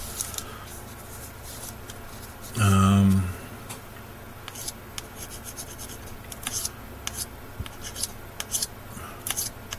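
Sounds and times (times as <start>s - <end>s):
sharp knife scraping flashing off edges: 4.5s - 8.7s.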